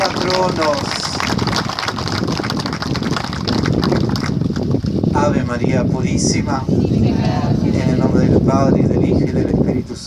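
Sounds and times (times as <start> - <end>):
crowd applauding: 0.0 - 4.7
speech: 0.3 - 1.0, 5.5 - 10.0.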